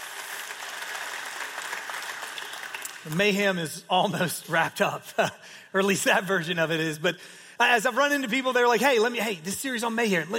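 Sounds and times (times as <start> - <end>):
audience applause for teachers and parents: 0.0 - 3.3
speech: 3.0 - 10.3.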